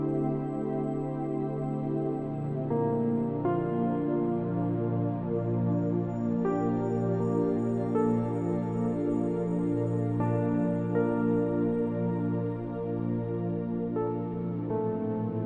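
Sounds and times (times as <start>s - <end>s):
relaxing music: 0.0s - 15.4s.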